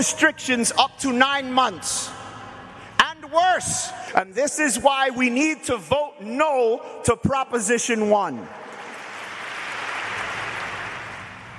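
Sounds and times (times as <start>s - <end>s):
speech: 0.0s - 2.2s, 3.3s - 8.6s
audience applause at the Napa Faith and Business Conference in New York City: 8.6s - 11.5s.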